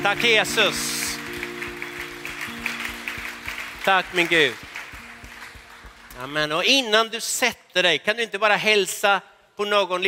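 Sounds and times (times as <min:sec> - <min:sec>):
speech: 0:00.0 - 0:01.4, 0:03.9 - 0:04.6, 0:06.2 - 0:10.0
audience applause: 0:00.0 - 0:06.7
rhythmic thumps: 0:00.0 - 0:06.7.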